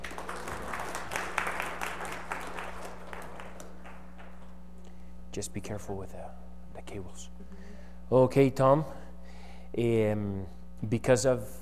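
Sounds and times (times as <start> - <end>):
round of applause: 0.0 - 4.6
speech: 5.3 - 7.4, 8.1 - 9.0, 9.7 - 11.6.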